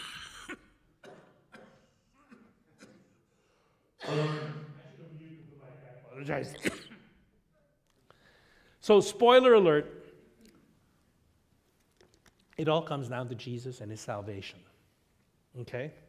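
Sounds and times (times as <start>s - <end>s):
person coughing: 0.0s - 3.3s, 4.0s - 4.8s, 6.5s - 7.2s
speech: 6.2s - 6.8s, 8.9s - 10.0s, 12.6s - 14.7s, 15.6s - 16.0s.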